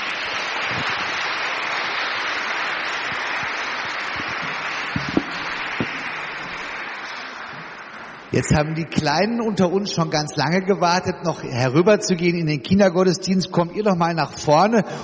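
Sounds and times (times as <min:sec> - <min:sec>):
audience applause: 0:00.0 - 0:08.7
speech: 0:08.3 - 0:15.0.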